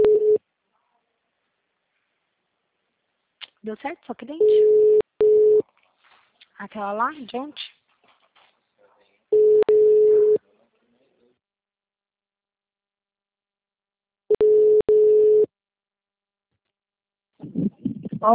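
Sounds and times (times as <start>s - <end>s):
telephone line tones while a call is placed: 0.0s - 0.4s, 4.4s - 5.6s, 9.4s - 10.4s, 14.3s - 15.5s
speech: 3.6s - 5.0s, 6.6s - 7.7s.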